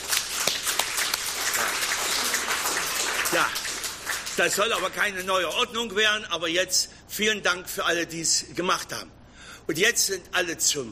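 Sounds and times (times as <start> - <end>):
audience clapping: 0.0 - 5.7
speech: 4.4 - 10.9.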